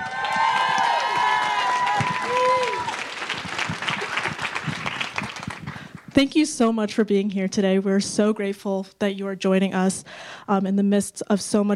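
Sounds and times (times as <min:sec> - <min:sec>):
whooping: 0:00.0 - 0:05.0
audience applause welcoming two guests on stage: 0:00.0 - 0:06.1
speech: 0:06.2 - 0:11.7.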